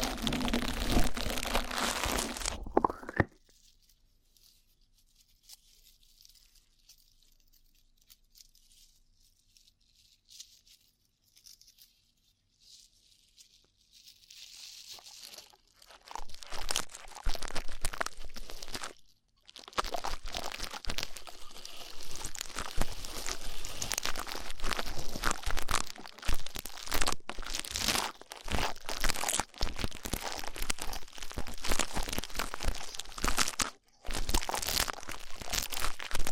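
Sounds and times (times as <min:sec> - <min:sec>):
rough ear cleaning scratchy crackling: 0:00.0 - 0:03.4, 0:15.0 - 0:19.0, 0:19.6 - 0:36.3.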